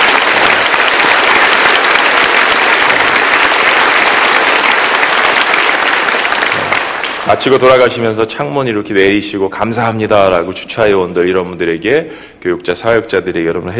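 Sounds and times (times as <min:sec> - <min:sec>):
audience applauding: 0:00.0 - 0:07.8
speech: 0:07.3 - 0:13.7.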